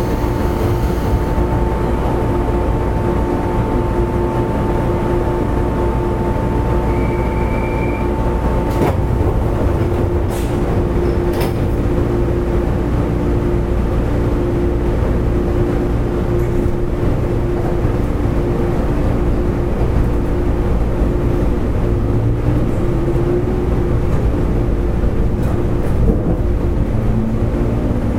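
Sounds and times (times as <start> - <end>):
JR West 103 series train running on the Hanwa Line: 0.0 - 28.1
brief squeals: 6.9 - 8.1.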